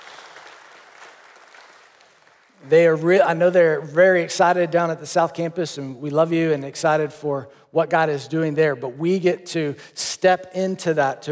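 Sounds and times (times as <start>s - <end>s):
crowd clapping: 0.0s - 2.6s
speech: 2.6s - 11.3s.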